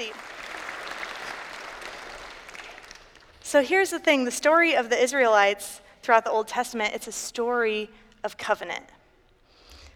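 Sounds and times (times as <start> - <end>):
crowd clapping: 0.0 - 3.4
speech: 3.5 - 9.0.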